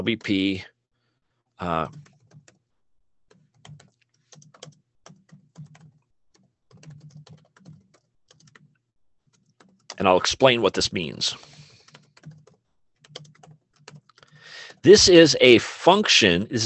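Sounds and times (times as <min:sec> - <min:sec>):
speech: 0:00.0 - 0:00.7, 0:01.6 - 0:02.1, 0:10.0 - 0:11.5, 0:14.8 - 0:16.6
typing on a computer keyboard: 0:01.8 - 0:02.7, 0:03.3 - 0:10.0, 0:11.4 - 0:14.4.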